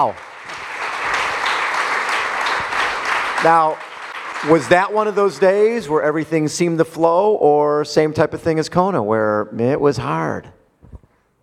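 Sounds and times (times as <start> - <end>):
speech: 0.0 - 0.6, 3.4 - 10.6
audience applause for a triathlete after an Ironman-distance race result: 0.0 - 5.8.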